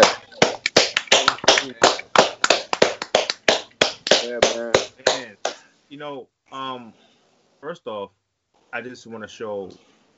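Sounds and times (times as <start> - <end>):
a few people clapping for a guest: 0.0 - 5.6
speech: 1.6 - 1.9, 6.0 - 9.9.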